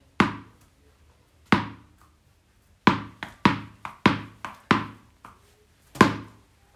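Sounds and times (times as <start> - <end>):
tennis ball bouncing: 0.2 - 0.6, 1.5 - 1.9, 2.9 - 6.4.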